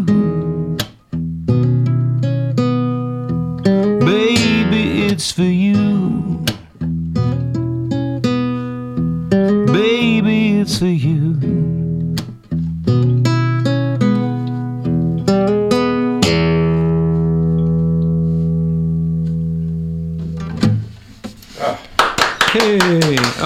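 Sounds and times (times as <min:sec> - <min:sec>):
person singing: 0:00.0 - 0:00.7, 0:03.8 - 0:06.6, 0:09.6 - 0:11.8
strummed guitar: 0:00.0 - 0:21.5
speech: 0:05.2 - 0:05.6
two people clapping: 0:21.7 - 0:23.4.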